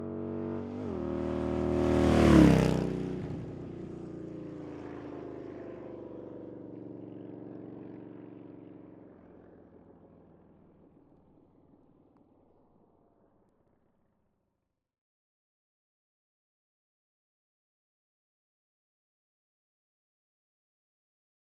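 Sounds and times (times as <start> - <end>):
2004 Harley Davidson Night Train motorcycle starting, driving fast and stopping: 0.0 - 13.4.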